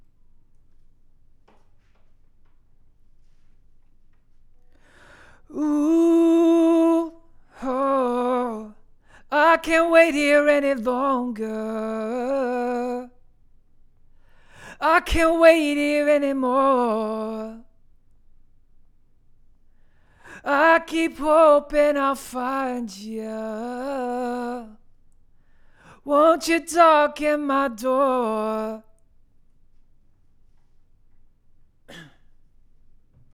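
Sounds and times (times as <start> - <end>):
vocals: 4.7 - 13.4, 14.2 - 17.9, 19.9 - 29.1, 31.9 - 32.2.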